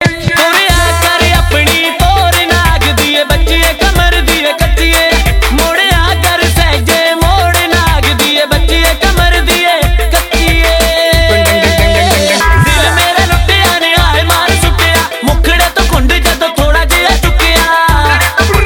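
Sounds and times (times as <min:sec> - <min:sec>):
Punjabi bhangra music: 0:00.0 - 0:18.6.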